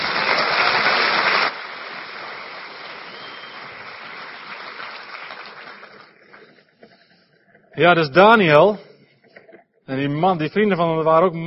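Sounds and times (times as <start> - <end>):
audience applause: 0.0 - 6.6
speech: 7.8 - 8.9, 9.9 - 11.4.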